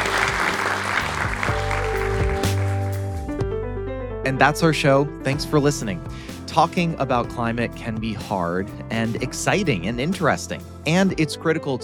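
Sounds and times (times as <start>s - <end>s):
audience round of applause: 0.0s - 3.1s
speech: 4.2s - 11.8s.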